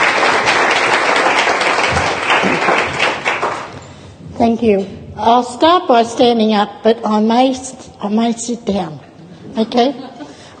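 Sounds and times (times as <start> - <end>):
audience applause: 0.0 - 3.8
speech: 4.4 - 9.0, 9.6 - 10.5.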